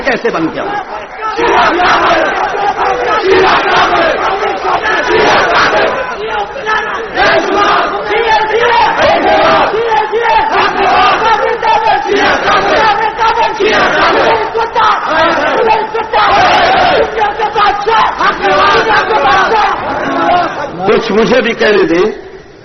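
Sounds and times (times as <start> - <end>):
speech: 0.2 - 1.0, 21.2 - 22.2
crowd chanting slogans at a speech: 0.6 - 20.8.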